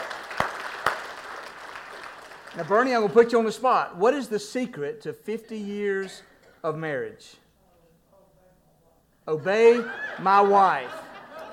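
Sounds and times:
audience applause: 0.0 - 3.2
speech: 2.6 - 7.4, 9.3 - 11.0
laughter: 9.3 - 11.5.

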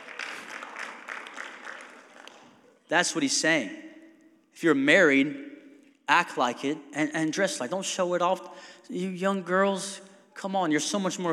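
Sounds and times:
audience clapping: 0.0 - 2.7
speech: 2.9 - 3.9, 4.6 - 5.5, 6.1 - 11.3.

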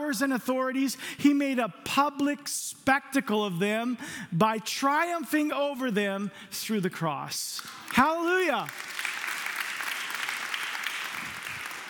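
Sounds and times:
speech: 0.1 - 8.9
audience clapping: 7.6 - 11.8.

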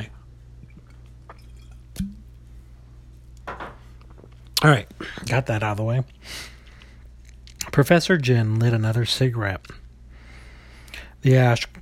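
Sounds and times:
low steady hum: 0.0 - 11.8
glass being handled: 1.3 - 2.3
speech: 4.6 - 6.5, 7.8 - 9.8, 11.2 - 11.8.

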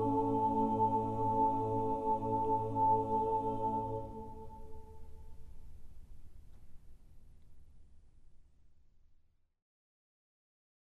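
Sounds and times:
chorale: 0.0 - 7.0.

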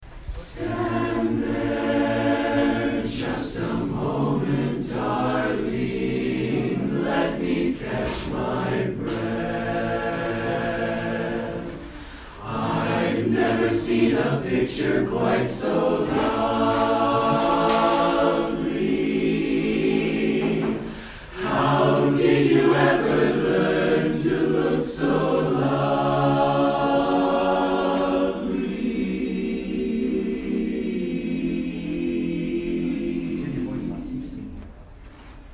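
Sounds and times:
barbershop quartet singing: 0.1 - 35.5.

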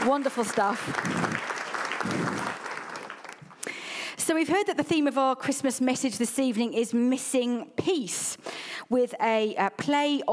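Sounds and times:
speech: 0.0 - 2.6, 4.3 - 10.3
audience applauding the musicians: 0.0 - 3.7.

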